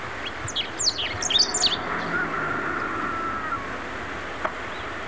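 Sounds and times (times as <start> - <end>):
Chestnut-breasted mountain finch giving quick high twittering chirps: 0.2 - 4.9.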